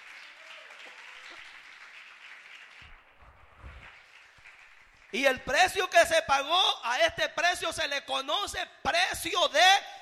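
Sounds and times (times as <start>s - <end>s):
audience applauding: 0.0s - 5.5s
speech: 5.1s - 9.9s.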